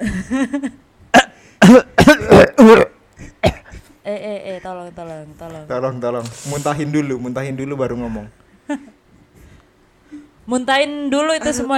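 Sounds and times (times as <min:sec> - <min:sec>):
speech: 0:00.2 - 0:00.8, 0:06.0 - 0:08.9, 0:10.5 - 0:11.7
throat clearing: 0:01.1 - 0:03.9
coughing: 0:01.1 - 0:04.0.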